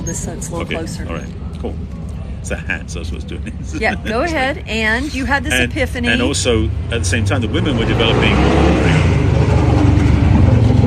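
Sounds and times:
speech: 0:00.0 - 0:09.5
loud motorbikes passing: 0:03.5 - 0:10.8.

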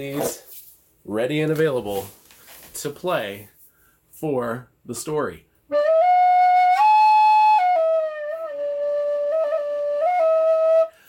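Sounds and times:
speech: 0:00.0 - 0:02.2, 0:02.8 - 0:03.5, 0:04.2 - 0:05.5
low D tin whistle playing a slow melody: 0:05.7 - 0:11.0.

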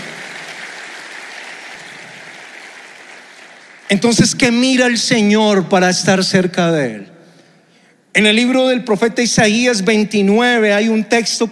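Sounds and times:
audience applause: 0:00.0 - 0:04.0
speech: 0:03.9 - 0:07.1, 0:08.2 - 0:11.5.

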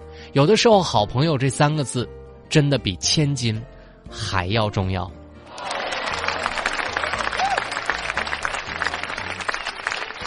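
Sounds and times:
speech: 0:00.3 - 0:05.2
applause: 0:05.5 - 0:10.2.

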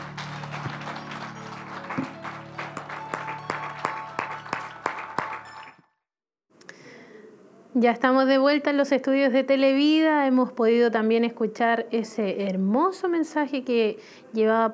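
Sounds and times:
audience applause: 0:00.0 - 0:05.8
speech: 0:07.8 - 0:14.7.

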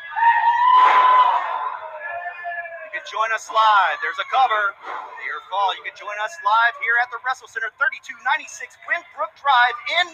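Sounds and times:
capacity crowd cheering at the Wrestle Center: 0:00.0 - 0:07.3
speech: 0:03.1 - 0:10.1.

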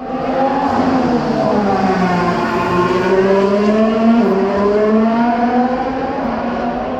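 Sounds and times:
Nick De bryce's Mercedes Formula 1 engine through the last corner: 0:00.0 - 0:06.9.

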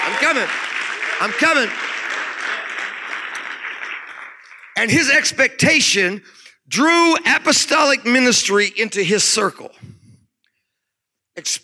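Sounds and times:
audience clapping hands: 0:00.0 - 0:05.4
speech: 0:00.2 - 0:01.9, 0:04.8 - 0:10.0, 0:11.4 - 0:11.6.

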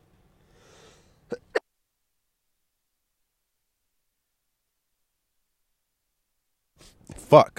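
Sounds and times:
person sniffling: 0:00.5 - 0:01.6
person coughing: 0:01.3 - 0:01.6.

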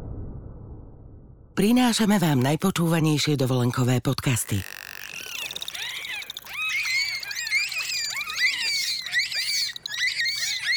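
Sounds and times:
speech: 0:01.6 - 0:04.8
bottlenose dolphins whistling and chirping: 0:04.3 - 0:10.7.

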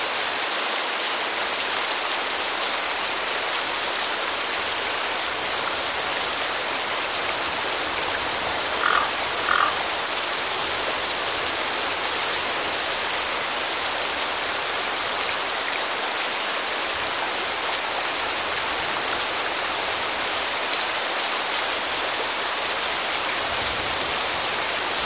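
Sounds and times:
gentle rain in a cemetery: 0:00.0 - 0:25.0
brief higher calls, possibly a bird: 0:08.7 - 0:10.0.

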